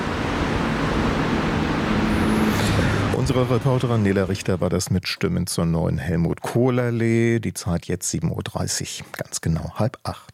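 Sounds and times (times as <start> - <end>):
road traffic noise: 0.0 - 4.9
speech: 3.4 - 10.3.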